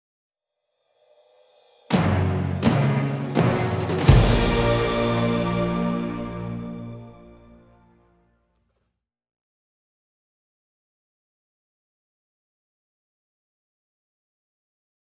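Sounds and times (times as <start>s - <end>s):
final battle combat music: 1.9s - 8.0s.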